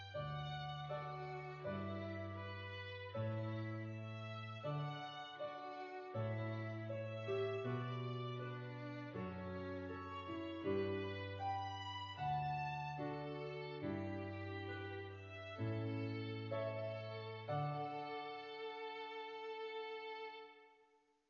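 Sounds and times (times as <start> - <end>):
piano: 0.0 - 20.7
violin: 0.0 - 20.8.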